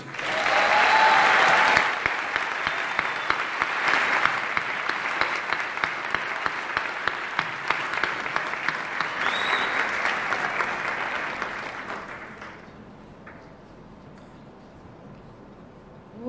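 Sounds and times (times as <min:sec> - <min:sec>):
audience applause: 0:00.0 - 0:12.7.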